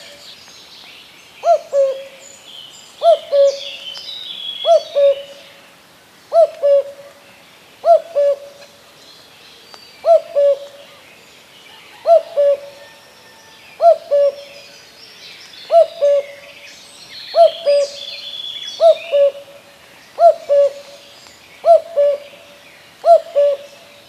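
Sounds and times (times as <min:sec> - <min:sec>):
common cuckoo giving two-note cu-coo calls: 0:01.4 - 0:02.3, 0:03.0 - 0:05.6, 0:06.3 - 0:07.2, 0:07.8 - 0:08.8, 0:10.0 - 0:11.0, 0:11.7 - 0:14.8, 0:15.6 - 0:16.5, 0:17.3 - 0:19.6, 0:20.2 - 0:24.0.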